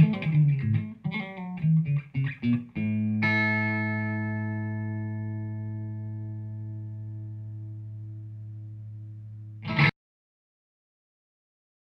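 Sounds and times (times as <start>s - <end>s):
clean Stratocaster electric guitar shuffle on position 4 pickup: 0.0s - 9.9s.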